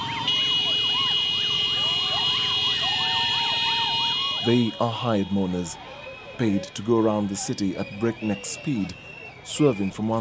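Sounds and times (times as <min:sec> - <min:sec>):
motorcycle horns blaring: 0:00.3 - 0:05.4
motorcyclists' loud whistles: 0:00.3 - 0:05.4, 0:07.6 - 0:10.2
speech: 0:04.4 - 0:10.2.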